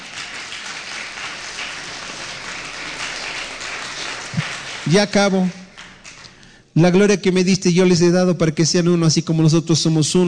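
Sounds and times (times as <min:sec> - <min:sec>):
audience applause: 0:00.0 - 0:06.5
speech: 0:04.9 - 0:05.6, 0:06.8 - 0:10.2.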